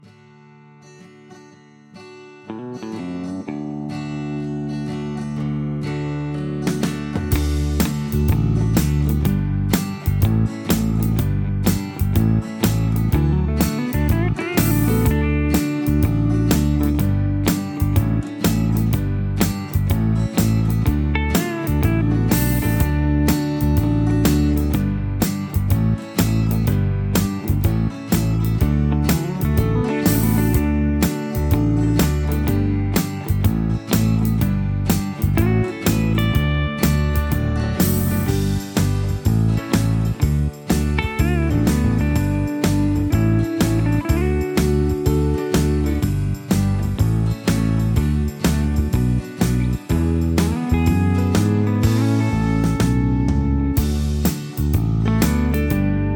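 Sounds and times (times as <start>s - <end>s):
instrumental music: 0.8s - 56.1s.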